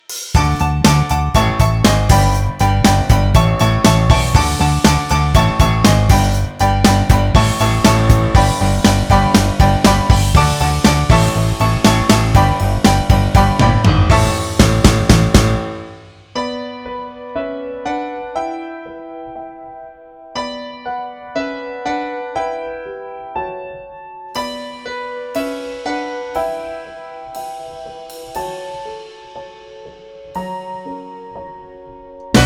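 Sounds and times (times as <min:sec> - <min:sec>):
instrumental music: 0:00.0 - 0:19.6, 0:24.2 - 0:32.4.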